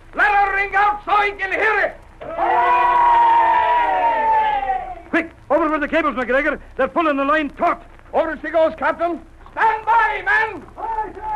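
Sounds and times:
speech: 1.2 - 2.7, 5.8 - 11.3
men cheering: 2.2 - 5.1.

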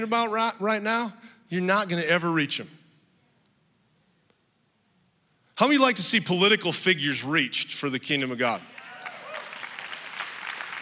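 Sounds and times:
speech: 0.0 - 2.8, 5.6 - 8.7
audience clapping: 8.7 - 10.8.

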